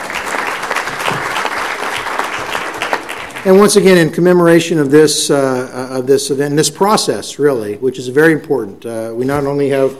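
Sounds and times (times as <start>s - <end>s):
audience clapping: 0.0s - 3.9s
speech: 3.4s - 9.9s.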